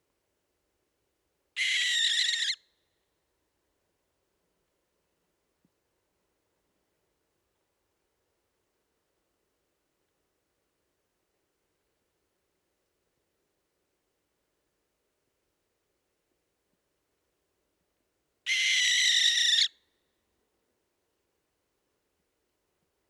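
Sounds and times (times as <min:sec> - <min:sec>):
barn owl Tyto alba calling: 0:01.6 - 0:02.6, 0:18.5 - 0:19.7.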